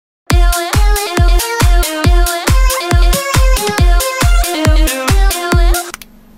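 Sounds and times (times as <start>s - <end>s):
meme phonk music: 0.3s - 6.0s.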